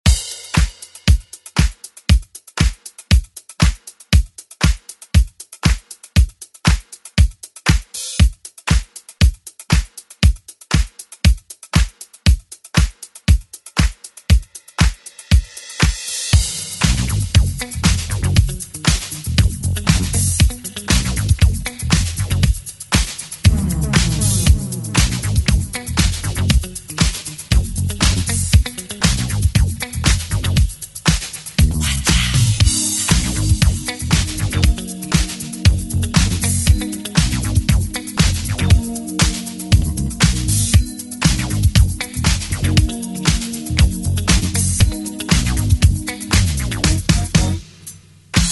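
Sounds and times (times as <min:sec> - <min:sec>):
eighties drum beat: 0:00.0 - 0:48.5.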